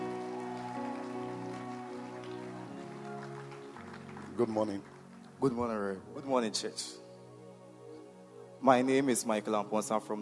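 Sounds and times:
audience clapping hands: 0.0 - 5.9
speech: 4.4 - 7.0, 8.6 - 10.2.

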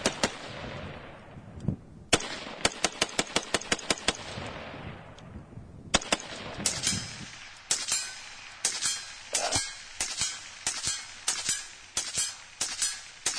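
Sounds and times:
suppressed gunfire at a target: 0.0 - 1.2, 2.1 - 5.3, 5.9 - 13.3.

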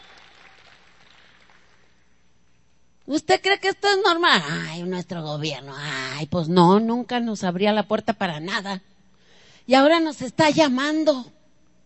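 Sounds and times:
crowd applause: 0.0 - 1.9
speech: 3.1 - 8.9, 9.7 - 11.4.

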